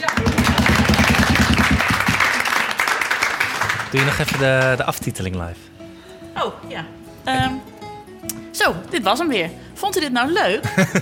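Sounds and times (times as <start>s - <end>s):
audience applause: 0.0s - 4.9s
speech: 3.9s - 5.7s, 6.4s - 11.0s
laughter: 10.6s - 11.0s.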